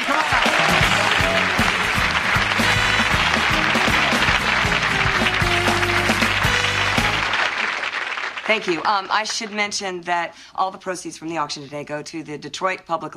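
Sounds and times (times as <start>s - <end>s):
studio audience clapping to welcome a guest auctioneer: 0.0s - 9.7s
speech: 8.5s - 13.1s.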